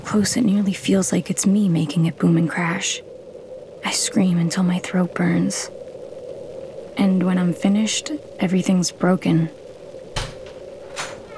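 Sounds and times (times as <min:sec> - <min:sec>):
speech: 0:00.1 - 0:03.1, 0:03.8 - 0:05.8, 0:07.0 - 0:09.6
door creaking open: 0:10.1 - 0:11.3.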